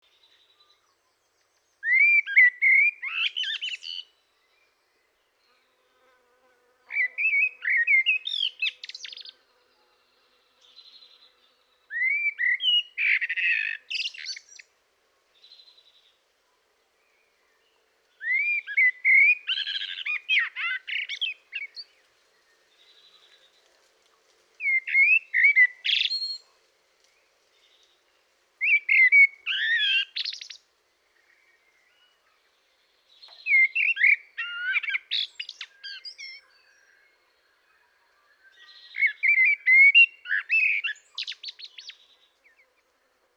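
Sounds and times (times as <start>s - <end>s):
Turdus merula singing: 1.8s - 4.1s, 6.9s - 9.4s, 11.9s - 14.6s, 18.2s - 21.9s, 24.6s - 26.4s, 28.6s - 30.6s, 33.1s - 37.6s, 38.3s - 42.6s.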